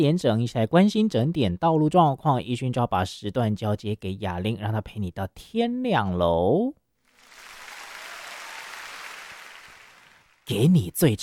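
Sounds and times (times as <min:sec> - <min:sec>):
speech: 0:00.0 - 0:06.8, 0:10.5 - 0:11.2
crowd applause: 0:07.1 - 0:10.6.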